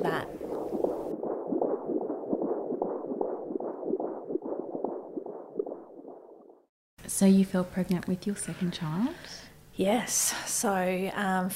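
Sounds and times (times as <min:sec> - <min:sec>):
fetal heartbeat on an ultrasound monitor: 0:00.0 - 0:06.7
speech: 0:07.1 - 0:11.5.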